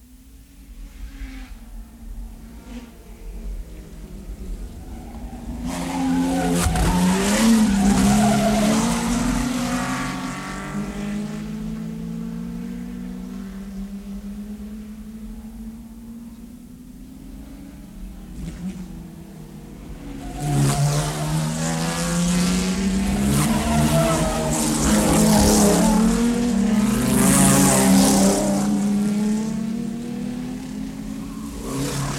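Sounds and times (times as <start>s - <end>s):
Grand Prix racing cars roaring past at speed: 0.9s - 32.1s
racing car tires skidding and squealing: 4.6s - 10.6s, 20.1s - 28.5s.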